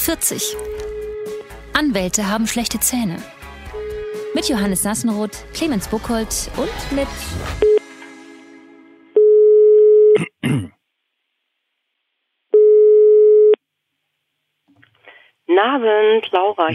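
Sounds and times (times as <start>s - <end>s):
speech: 0.0s - 3.4s, 4.4s - 7.7s, 15.6s - 16.7s
telephone ringing tone: 0.6s - 1.5s, 3.7s - 4.8s, 7.6s - 7.8s, 9.2s - 10.2s, 12.6s - 13.6s.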